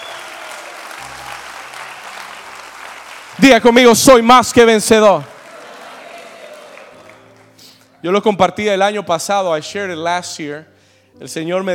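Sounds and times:
audience applause: 0.0s - 7.6s
speech: 3.4s - 5.3s, 8.0s - 11.7s.

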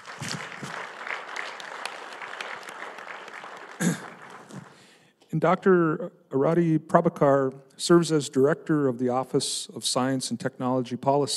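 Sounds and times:
audience applause: 0.0s - 5.0s
speech: 5.4s - 11.3s.

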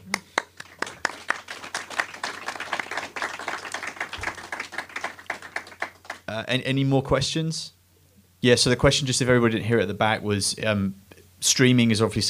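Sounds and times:
audience applause for a panel: 0.0s - 6.3s
speech: 6.4s - 7.8s, 8.4s - 12.2s.

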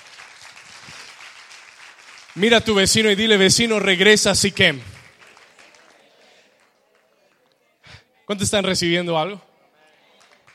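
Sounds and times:
audience applause: 0.0s - 3.9s, 4.6s - 7.5s, 10.2s - 10.5s
speech: 2.4s - 5.0s, 8.3s - 9.5s.

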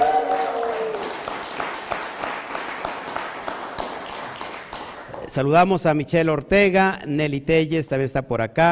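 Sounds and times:
audience applause: 0.0s - 5.4s
speech: 5.3s - 8.7s.

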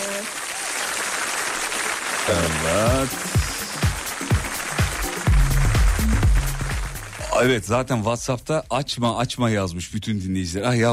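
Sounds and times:
applause: 0.0s - 7.9s
speech: 2.3s - 3.4s, 7.4s - 10.9s.

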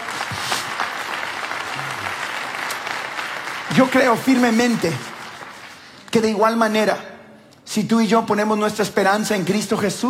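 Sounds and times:
audience applause: 0.0s - 6.0s
speech: 3.7s - 5.1s, 6.2s - 7.1s, 7.7s - 10.0s.

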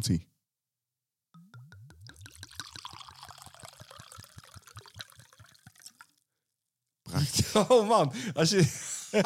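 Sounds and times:
speech: 0.0s - 0.3s, 7.2s - 9.2s
wine glugging from a bottle into a glass: 1.4s - 6.2s
laughter: 7.1s - 9.2s.

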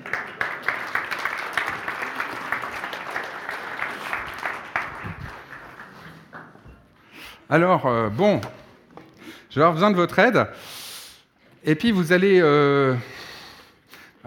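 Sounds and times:
audience applause: 0.0s - 6.6s
speech: 7.5s - 8.6s, 9.5s - 10.7s, 11.6s - 13.1s.

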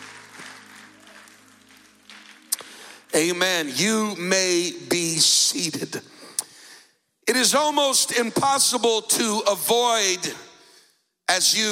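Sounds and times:
audience clapping hands: 0.0s - 3.4s
speech: 3.2s - 6.2s, 7.4s - 10.4s, 11.4s - 11.6s.

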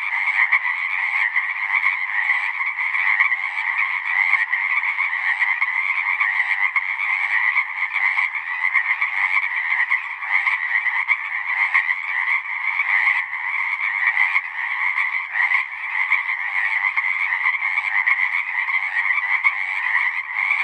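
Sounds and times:
Pacific chorus frogs croaking: 0.0s - 20.6s.

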